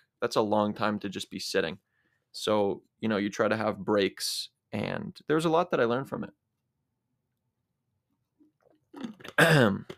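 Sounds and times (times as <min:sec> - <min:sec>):
speech: 0:00.2 - 0:06.4, 0:09.0 - 0:09.9
person drinking water: 0:08.5 - 0:09.9.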